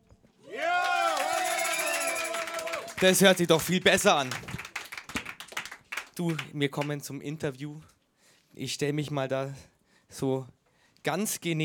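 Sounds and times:
live audience applause: 0.5s - 6.5s
speech: 3.0s - 4.6s, 6.2s - 7.9s, 8.6s - 11.6s.

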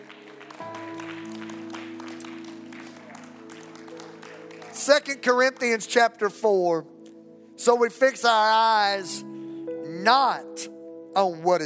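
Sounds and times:
audience clapping: 0.0s - 6.0s
sustained organ-like chords: 0.0s - 11.6s
speech: 4.8s - 7.0s, 7.6s - 9.3s, 10.0s - 11.6s.

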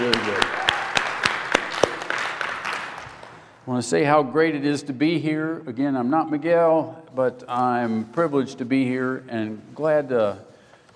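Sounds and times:
audience applause: 0.0s - 3.5s
speech: 3.7s - 10.5s.

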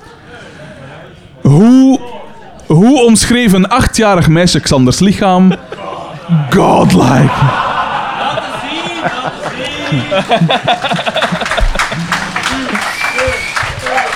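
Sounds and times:
speech: 1.5s - 1.8s, 2.7s - 7.7s, 9.0s - 11.3s
laughter: 5.0s - 14.1s
applause: 8.8s - 14.1s.

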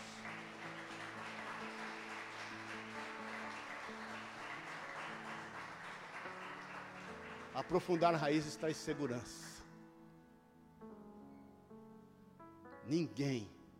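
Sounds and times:
crowd applause: 0.0s - 9.5s
speech: 7.6s - 9.4s, 12.9s - 13.6s.

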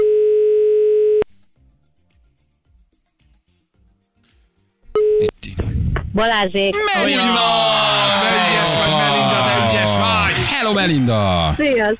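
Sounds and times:
telephone dial tone during a radio call-in: 0.0s - 1.2s
speech: 6.2s - 7.9s, 8.6s - 11.9s
laughter: 6.8s - 11.8s.

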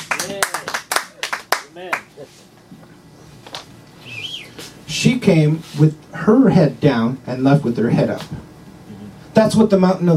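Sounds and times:
audience round of applause: 0.0s - 2.1s
speech: 5.0s - 8.5s, 9.4s - 10.1s.

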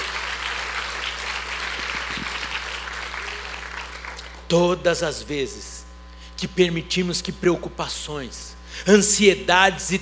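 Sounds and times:
audience applauding: 0.0s - 4.5s
speech: 4.5s - 5.8s, 6.4s - 9.9s.

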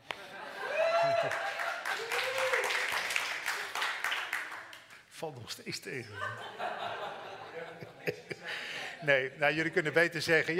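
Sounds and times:
rising vocal whoops: 0.6s - 2.9s
audience applause: 0.6s - 4.9s
speech: 5.2s - 6.9s, 8.0s - 10.5s
laughter: 6.0s - 9.9s.

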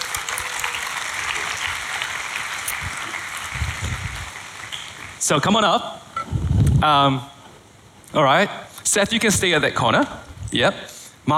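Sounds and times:
church congregation applauding volunteers: 0.0s - 5.5s
speech: 5.3s - 6.0s, 6.8s - 7.3s, 8.1s - 11.3s.

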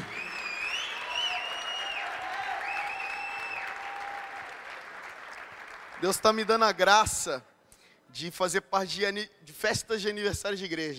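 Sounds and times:
audience applause: 0.0s - 6.8s
speech: 6.0s - 7.5s, 8.1s - 10.9s.

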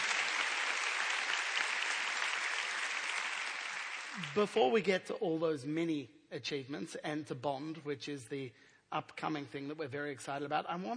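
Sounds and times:
audience applause: 0.0s - 4.7s
speech: 4.2s - 10.9s.

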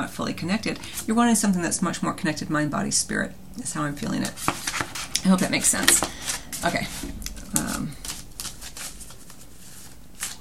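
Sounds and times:
speech: 0.1s - 4.6s, 5.2s - 8.0s
tarot cards shuffled and drawn: 4.2s - 10.3s.

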